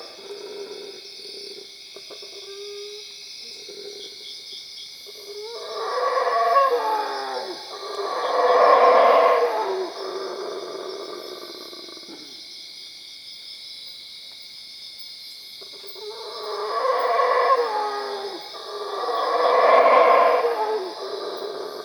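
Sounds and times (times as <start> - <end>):
howler monkey howling at Cuevas: 5.3 - 12.0, 16.0 - 21.8.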